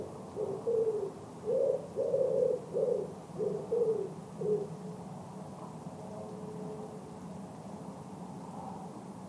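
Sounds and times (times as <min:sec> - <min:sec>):
bird cooing: 0:00.0 - 0:05.0.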